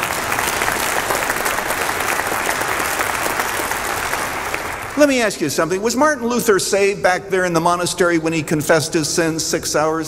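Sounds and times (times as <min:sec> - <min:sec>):
audience applause: 0:00.0 - 0:05.3
speech: 0:05.0 - 0:10.0.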